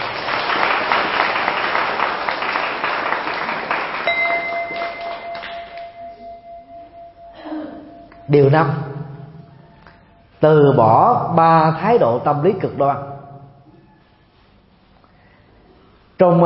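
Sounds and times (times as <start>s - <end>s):
crowd applauding: 0.0s - 6.0s
clear ringing tone: 4.1s - 10.4s
speech: 8.3s - 8.9s, 10.4s - 13.1s, 16.2s - 16.4s.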